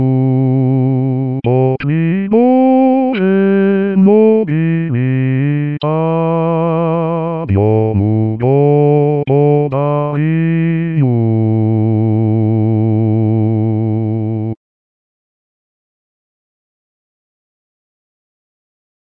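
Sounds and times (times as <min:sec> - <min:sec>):
Ukrainian carol on bass: 0:00.0 - 0:14.6.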